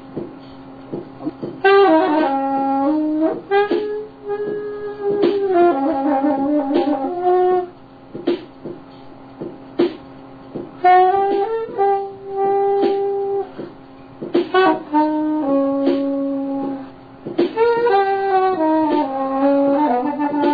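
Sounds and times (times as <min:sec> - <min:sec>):
trombone: 0:01.2 - 0:07.7, 0:10.8 - 0:13.6, 0:14.5 - 0:16.9, 0:17.5 - 0:20.5.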